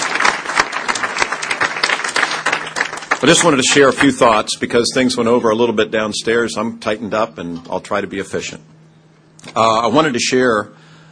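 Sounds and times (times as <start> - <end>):
audience applause: 0.0 - 4.4
speech: 3.2 - 8.8, 9.4 - 10.9.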